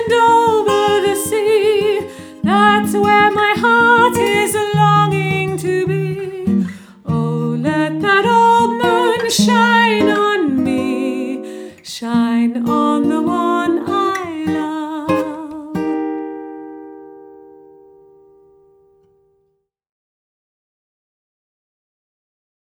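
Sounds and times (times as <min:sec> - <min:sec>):
woman singing: 0:00.0 - 0:16.2.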